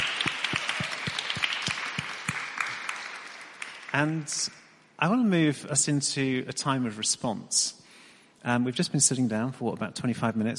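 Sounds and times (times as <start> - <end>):
audience clapping: 0.0 - 4.6
speech: 3.9 - 7.8, 8.4 - 10.5.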